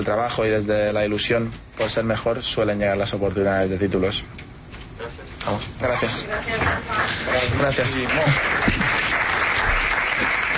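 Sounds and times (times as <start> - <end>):
speech: 0.0 - 4.4, 5.0 - 9.0
applause: 6.4 - 10.5.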